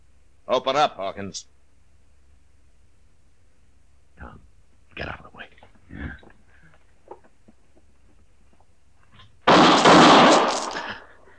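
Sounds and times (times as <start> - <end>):
speech: 0.5 - 1.6
gunshot: 9.5 - 11.0.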